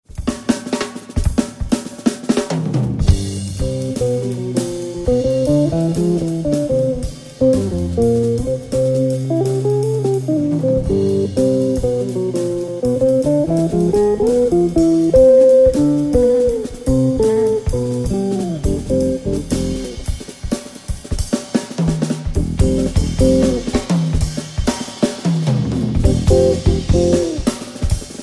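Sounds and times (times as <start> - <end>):
drum: 0.0 - 28.2.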